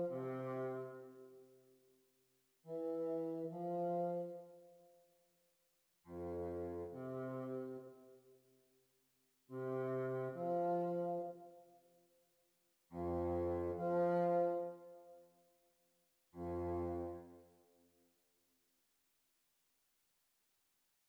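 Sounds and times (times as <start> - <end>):
bassoon duets practised at speed: 0.0 - 1.2, 2.7 - 4.5, 6.1 - 7.9, 9.6 - 11.4, 13.0 - 15.0, 16.4 - 17.4.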